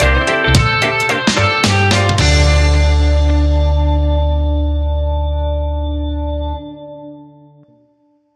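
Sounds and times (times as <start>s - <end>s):
hot summer reggae music stinger: 0.0s - 6.5s.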